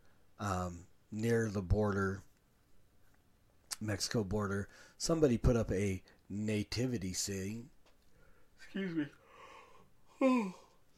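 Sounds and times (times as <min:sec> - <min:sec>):
speech: 0:00.4 - 0:02.3, 0:03.8 - 0:07.8, 0:08.6 - 0:09.2, 0:10.2 - 0:10.6
person yawning: 0:09.2 - 0:10.8.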